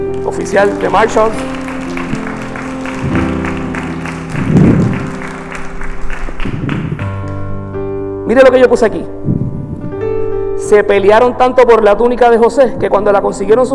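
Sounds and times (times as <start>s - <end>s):
speech: 0.0s - 1.6s, 8.3s - 9.5s, 10.6s - 13.7s
audience applause: 0.0s - 7.4s.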